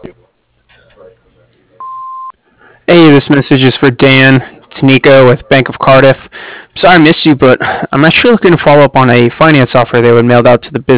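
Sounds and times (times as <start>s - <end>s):
business answering machine recording beep: 1.8s - 2.3s
speech: 2.9s - 10.9s.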